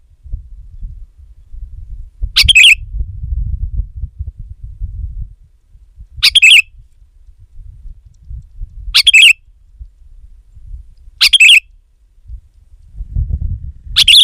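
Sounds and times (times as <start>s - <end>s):
low steady rumble: 0.0s - 14.2s
sooty-headed bulbul chattering: 2.4s - 2.8s, 6.2s - 6.6s, 9.0s - 9.4s, 11.2s - 11.6s, 14.0s - 14.2s.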